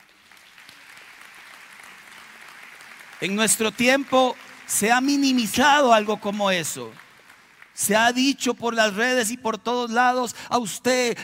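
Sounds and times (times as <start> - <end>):
audience applause: 0.0 - 8.0
speech: 3.2 - 7.0, 7.8 - 11.2.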